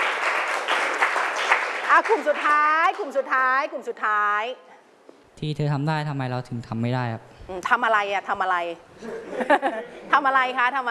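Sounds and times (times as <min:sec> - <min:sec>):
audience applause for groups: 0:00.0 - 0:02.6
speech: 0:02.0 - 0:04.7, 0:05.4 - 0:10.8
laughter: 0:09.0 - 0:10.1.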